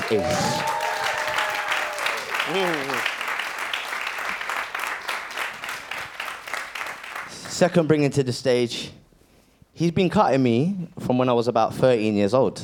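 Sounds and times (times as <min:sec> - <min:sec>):
audience applause: 0:00.0 - 0:07.6
speech: 0:00.1 - 0:00.7, 0:02.5 - 0:03.1, 0:07.6 - 0:09.0, 0:09.8 - 0:12.6.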